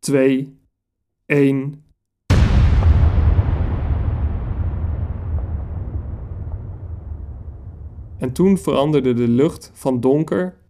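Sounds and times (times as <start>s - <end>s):
speech: 0.0s - 0.6s, 1.3s - 1.8s, 8.2s - 10.6s
atomic bomb detonation during a test, roughly 21 kilotons: 2.3s - 9.4s.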